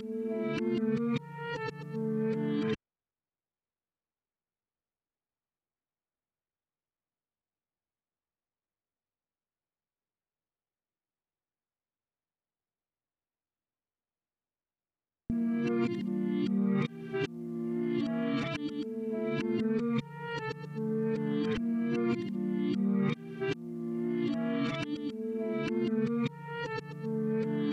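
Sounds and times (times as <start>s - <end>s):
reversed guitar melody in D minor: 0.0s - 2.8s, 15.3s - 27.7s.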